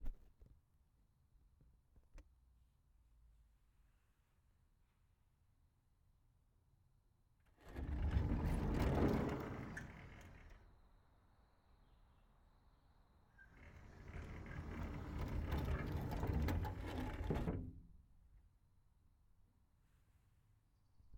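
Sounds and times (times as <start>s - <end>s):
glass sliding door opened and closed: 7.6s - 10.6s, 13.4s - 17.8s.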